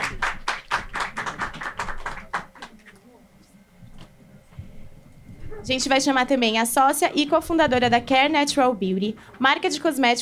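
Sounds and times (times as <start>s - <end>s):
audience applause: 0.0s - 2.9s
faint murmur: 1.0s - 10.1s
speech: 5.6s - 10.1s.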